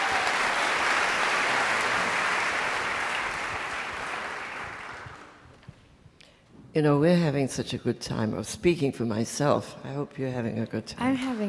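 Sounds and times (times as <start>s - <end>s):
audience applause: 0.0s - 5.4s
speech: 6.8s - 11.4s.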